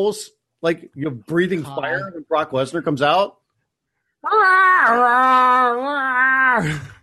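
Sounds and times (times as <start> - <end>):
speech: 0.0 - 3.4, 4.2 - 7.0
person's voice imitating a Godzilla roar: 4.3 - 7.0.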